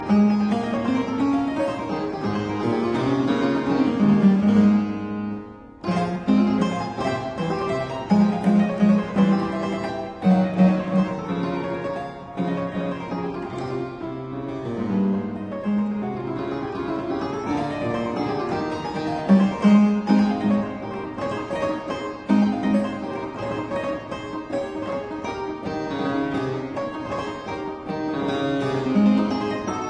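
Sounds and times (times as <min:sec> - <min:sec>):
keyboard sonata in G minor: 0:00.0 - 0:29.8.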